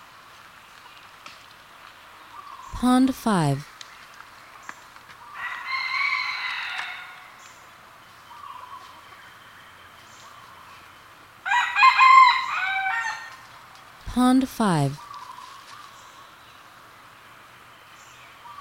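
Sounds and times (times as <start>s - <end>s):
speech: 2.8s - 3.7s, 14.2s - 15.0s
Red junglefowl crowing: 5.4s - 7.3s, 11.4s - 13.3s.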